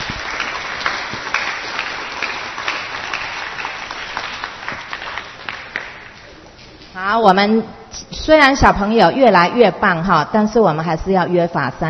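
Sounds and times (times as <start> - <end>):
audience applause: 0.0 - 6.3
speech: 7.0 - 11.8.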